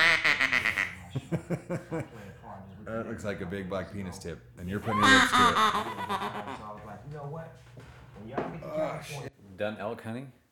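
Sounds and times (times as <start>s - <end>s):
hunter's duck call blown: 0.0s - 1.0s, 4.9s - 6.6s
laughter: 0.0s - 9.2s
speech: 1.2s - 6.5s, 7.1s - 10.4s.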